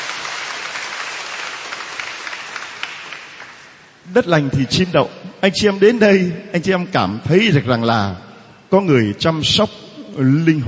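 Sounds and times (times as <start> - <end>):
audience applause: 0.0 - 3.8
speech: 4.1 - 10.6.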